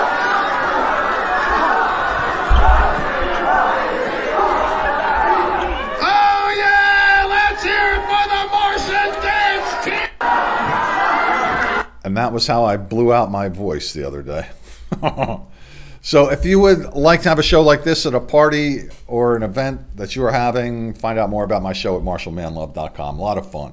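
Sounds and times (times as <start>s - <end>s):
audience singing a nursery rhyme together while a dance team performs: 0.0s - 11.8s
laughter: 0.0s - 11.8s, 14.9s - 15.5s
crowd chatter: 0.0s - 11.9s
speech: 12.2s - 23.7s.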